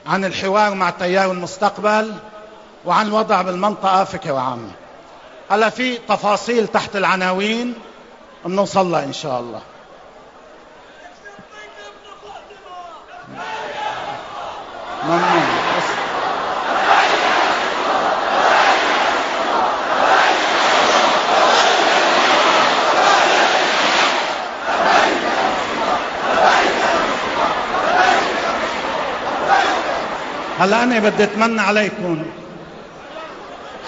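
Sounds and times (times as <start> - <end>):
speech: 0.0 - 4.8, 5.5 - 9.7, 15.1 - 15.6, 30.6 - 32.4
large crowd chanting slogans at a political speech event: 13.2 - 31.6.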